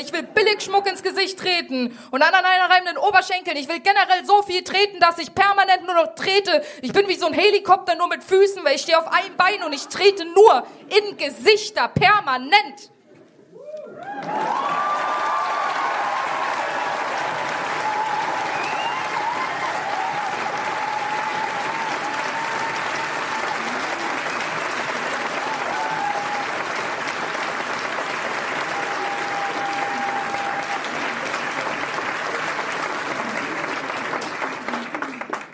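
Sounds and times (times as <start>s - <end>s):
speech: 0.0s - 13.0s, 14.2s - 15.2s
whoops and cheers: 13.5s - 26.8s, 28.6s - 31.0s
audience applauding: 13.8s - 35.5s.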